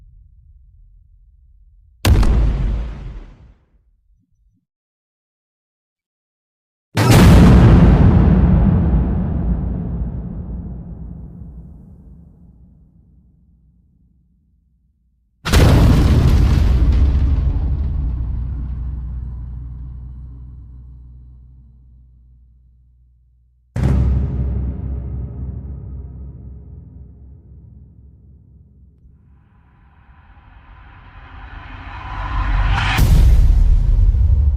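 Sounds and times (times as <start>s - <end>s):
booms: 0.0s - 3.7s, 7.0s - 13.8s, 15.4s - 22.6s, 23.8s - 34.5s.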